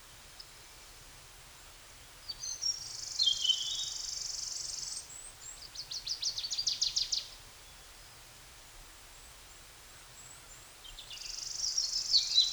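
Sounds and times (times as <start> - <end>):
birdsong: 2.3 - 7.9, 10.2 - 12.5.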